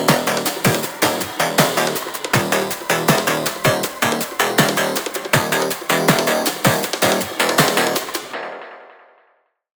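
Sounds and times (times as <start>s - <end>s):
intense industrial tech music: 0.0s - 9.1s.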